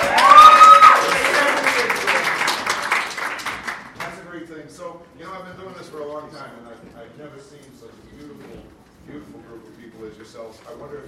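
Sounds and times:
crowd in Chicago applauding and cheering: 0.0 - 4.1
speech: 6.3 - 11.0.

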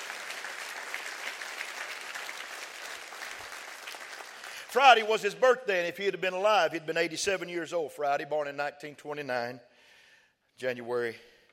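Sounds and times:
audience clapping hands: 0.0 - 5.4
speech: 4.7 - 9.7, 10.6 - 11.3.

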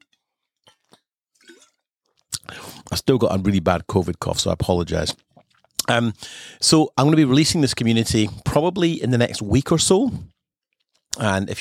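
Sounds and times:
person drinking a glass of water: 0.1 - 2.9, 5.1 - 6.4, 10.3 - 11.2
speech: 2.9 - 5.2, 5.9 - 10.4, 11.2 - 11.5.

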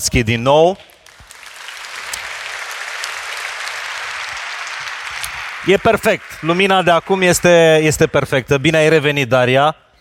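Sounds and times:
speech: 0.0 - 0.9, 5.6 - 9.8
audience applause: 1.0 - 8.5.

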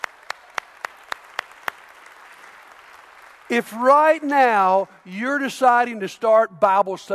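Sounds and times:
hand claps: 0.0 - 3.7
speech: 3.5 - 7.1.

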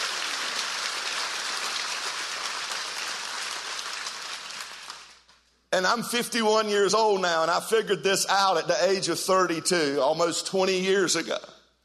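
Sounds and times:
audience hand clapping: 0.0 - 5.4
speech: 5.8 - 11.5.

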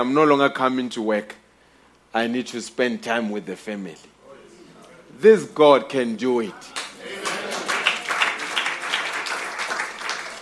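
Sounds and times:
speech: 0.0 - 1.4, 2.1 - 4.1, 5.2 - 6.8
audience clapping hands: 6.7 - 10.4.

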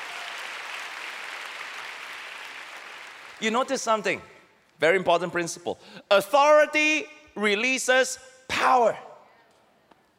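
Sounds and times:
audience applause: 0.0 - 3.4
speech: 3.4 - 9.1.

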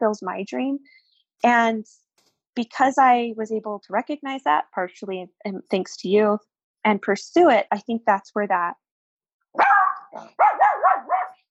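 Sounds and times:
speech: 0.0 - 2.0, 2.6 - 8.8, 9.5 - 11.4
Chiweenie dog barking in high-pitched yaps: 9.6 - 11.4.

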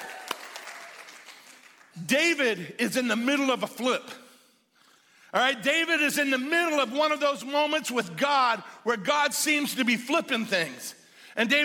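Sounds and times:
audience cheering and applauding: 0.0 - 2.0
speech: 2.0 - 4.2, 5.3 - 11.6.

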